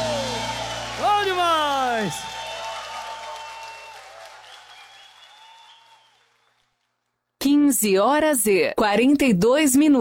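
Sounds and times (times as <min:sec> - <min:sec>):
crowd applauding: 0:00.0 - 0:07.2
speech: 0:02.0 - 0:02.4, 0:07.8 - 0:09.9.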